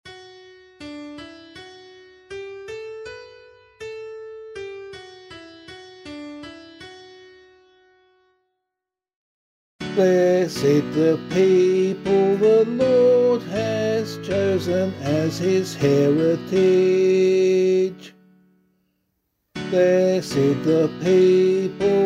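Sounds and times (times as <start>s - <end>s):
psalm in C sung by voice: 9.9s - 18.2s, 19.6s - 22.0s.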